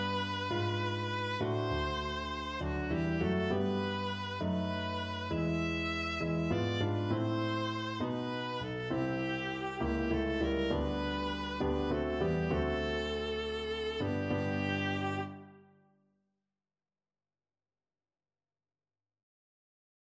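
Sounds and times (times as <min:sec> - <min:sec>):
viola: 0:00.0 - 0:15.7.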